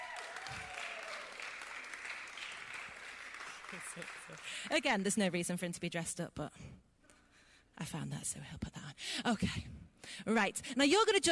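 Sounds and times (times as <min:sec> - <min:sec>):
round of applause: 0:00.0 - 0:04.9
speech: 0:03.7 - 0:06.9, 0:07.8 - 0:11.3.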